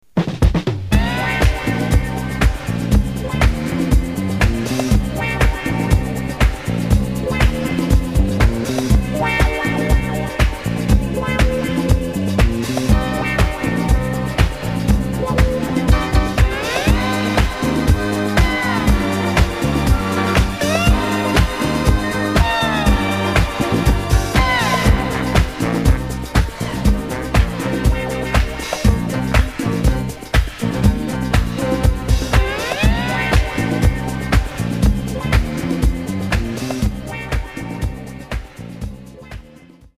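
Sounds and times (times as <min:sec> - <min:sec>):
instrumental music: 0:00.2 - 0:39.9.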